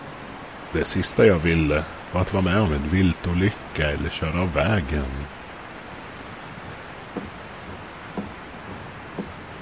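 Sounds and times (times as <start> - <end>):
rain drumming on a car: 0.0 - 9.6
speech: 0.7 - 5.4
windshield wiper thumps: 6.4 - 9.6.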